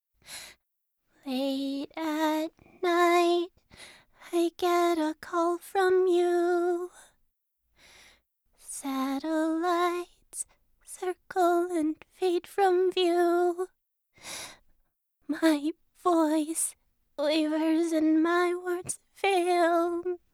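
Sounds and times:
a cappella singing: 1.2 - 3.6, 4.2 - 7.1, 8.6 - 13.8, 15.3 - 20.3.

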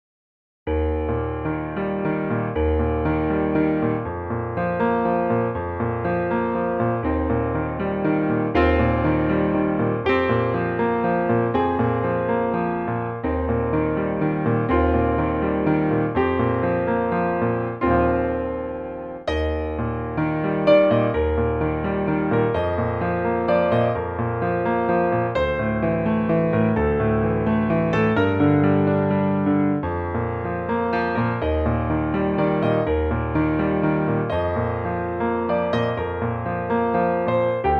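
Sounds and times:
piano: 0.7 - 37.7.

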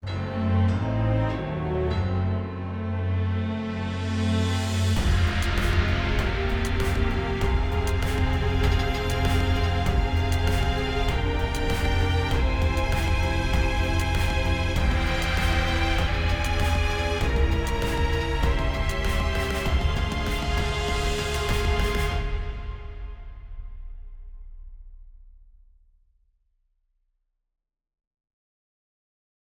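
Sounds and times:
villain win and escape music: 0.1 - 22.9.

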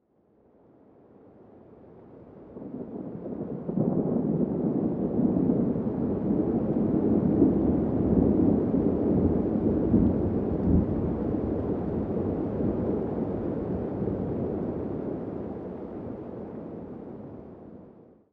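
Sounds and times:
rain nearby: 1.9 - 17.5
thunder: 2.3 - 16.4.

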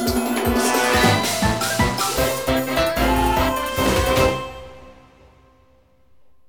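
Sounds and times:
level clear game jingle: 0.1 - 5.0.

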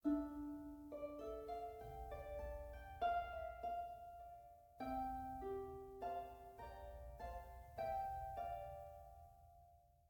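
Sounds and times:
harp: 0.0 - 10.0.

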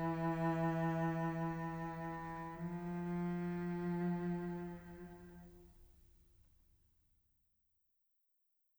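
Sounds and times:
string quintet chamber music: 0.0 - 5.7.

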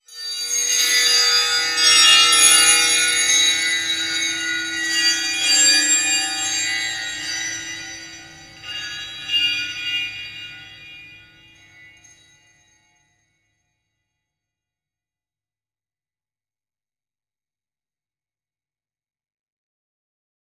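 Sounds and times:
temple bells: 0.1 - 12.2.

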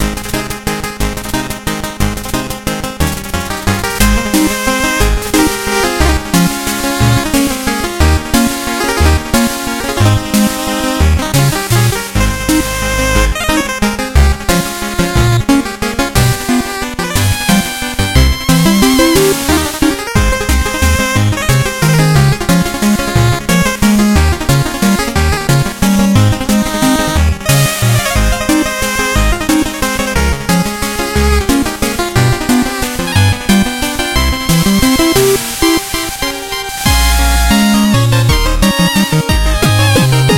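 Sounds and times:
dance music: 0.0 - 40.3.

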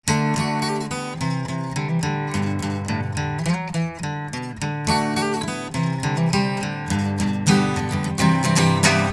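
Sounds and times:
guitar: 0.0 - 9.1.

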